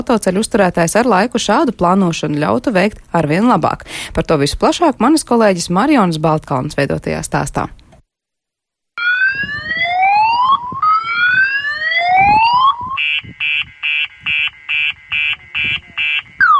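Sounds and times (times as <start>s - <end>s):
speech: 0.0s - 7.8s
railway level crossing warning signal: 9.0s - 16.5s.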